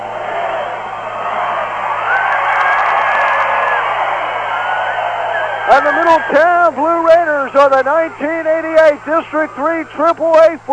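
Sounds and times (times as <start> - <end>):
yells and whoops: 0.0 - 6.7
football crowd cheering on far sideline: 0.0 - 10.5
speech: 5.7 - 10.7.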